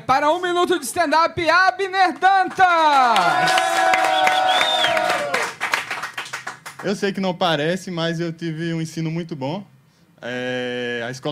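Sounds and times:
speech: 0.1 - 4.8, 6.8 - 11.3
audience applause: 2.2 - 6.8.

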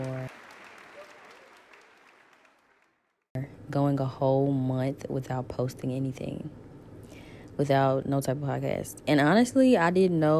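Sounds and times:
applause: 0.0 - 3.2
speech: 3.7 - 6.6, 7.6 - 10.3.

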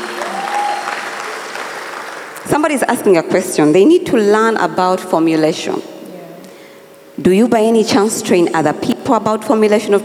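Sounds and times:
audience clapping: 0.0 - 2.5
speech: 2.5 - 5.9, 7.2 - 10.0.

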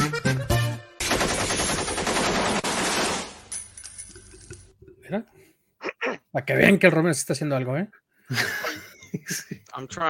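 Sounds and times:
500 gunshots: 1.0 - 3.5
speech: 5.1 - 5.4, 6.3 - 10.0
laughter: 8.3 - 9.7.

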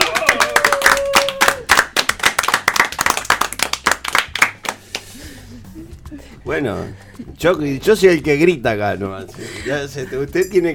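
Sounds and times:
crowd applause and clapping: 0.0 - 5.0
speech: 6.5 - 10.7.

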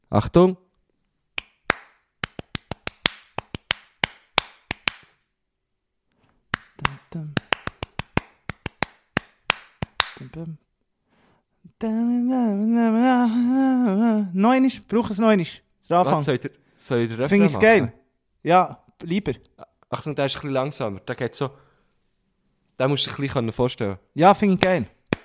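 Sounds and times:
speech: 0.1 - 0.6, 10.3 - 10.7, 11.7 - 21.6, 22.8 - 25.0
rhythmic hand clapping: 1.4 - 5.2, 6.5 - 10.3, 24.6 - 25.2.

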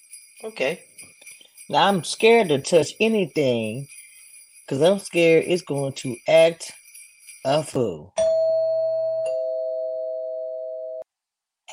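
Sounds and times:
speech: 0.4 - 1.0, 1.7 - 4.0, 4.7 - 6.8, 7.4 - 8.2
electronic doorbell chiming: 8.2 - 11.0.

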